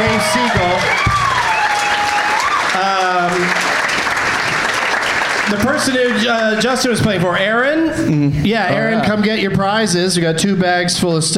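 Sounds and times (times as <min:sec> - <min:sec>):
audience applause: 0:00.0 - 0:07.0
speech: 0:05.8 - 0:11.3.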